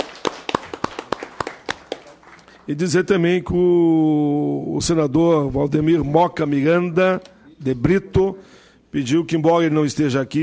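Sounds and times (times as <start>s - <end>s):
sparse hand claps at a Brazilian Senate committee session: 0.0s - 2.5s
speech: 2.7s - 10.4s.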